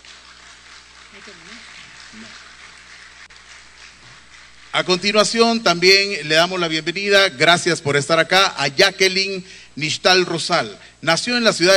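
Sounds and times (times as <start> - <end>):
audience applause: 0.0 - 5.3
speech: 1.1 - 2.5, 4.7 - 11.7.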